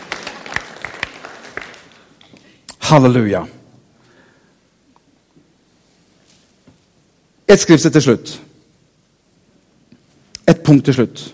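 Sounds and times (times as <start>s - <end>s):
audience applause: 0.0s - 2.2s
speech: 2.9s - 3.6s, 7.5s - 8.5s, 10.7s - 11.3s.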